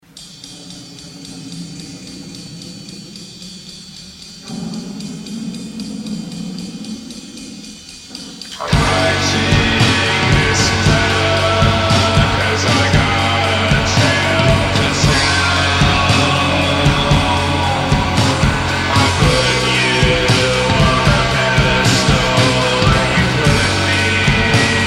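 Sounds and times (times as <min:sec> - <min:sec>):
song: 0:00.2 - 0:24.8.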